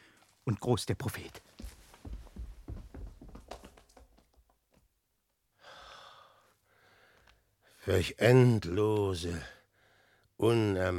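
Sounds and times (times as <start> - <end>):
speech: 0.5 - 1.5, 7.9 - 9.6, 10.4 - 10.9
footsteps approaching closely: 1.1 - 4.9.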